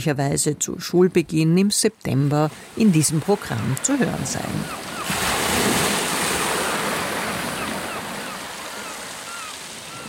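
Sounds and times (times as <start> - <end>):
speech: 0.0 - 5.3
wind at sea: 0.0 - 10.0
sea waves: 2.0 - 10.0.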